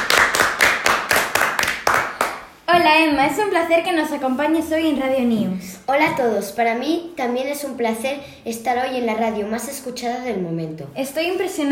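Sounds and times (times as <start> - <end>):
applause: 0.0 - 2.5
speech: 2.8 - 11.7.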